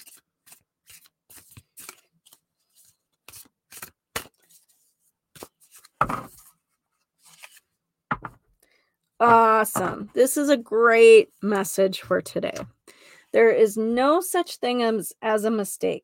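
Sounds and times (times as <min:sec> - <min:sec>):
oracle card deck being handled and a card pulled: 0:00.0 - 0:06.5, 0:07.2 - 0:07.7
speech: 0:09.2 - 0:16.0.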